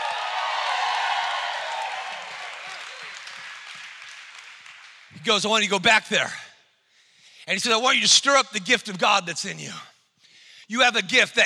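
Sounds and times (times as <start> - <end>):
crowd shouting: 0.0 - 3.1
audience clapping: 0.0 - 5.6
speech: 5.2 - 6.4, 7.5 - 9.9, 10.7 - 11.4.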